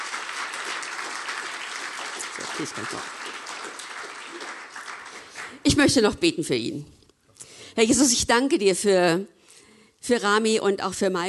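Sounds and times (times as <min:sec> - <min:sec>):
audience applause: 0:00.0 - 0:05.7
speech: 0:02.6 - 0:03.3, 0:05.6 - 0:07.0, 0:07.8 - 0:09.4, 0:10.0 - 0:11.2.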